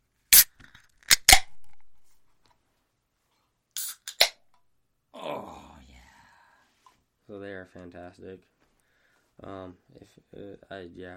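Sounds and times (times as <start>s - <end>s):
Arnold Palmer drink can cracking open: 0.3s - 1.9s, 3.8s - 4.4s
speech: 7.3s - 8.6s, 9.4s - 11.1s.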